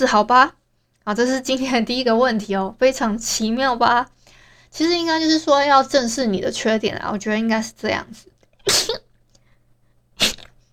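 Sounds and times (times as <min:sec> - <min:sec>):
speech: 0:00.0 - 0:09.0
sneeze: 0:08.6 - 0:09.1, 0:10.2 - 0:10.7.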